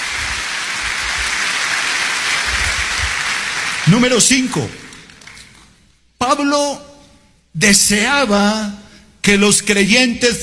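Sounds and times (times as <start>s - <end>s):
audience applause: 0.0s - 4.4s
speech: 3.9s - 4.8s, 6.4s - 6.9s, 7.6s - 10.4s.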